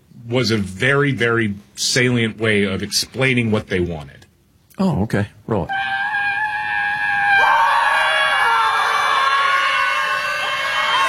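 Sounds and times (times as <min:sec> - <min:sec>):
speech: 0:00.3 - 0:04.2, 0:04.8 - 0:06.0
protesters screaming: 0:05.7 - 0:11.0.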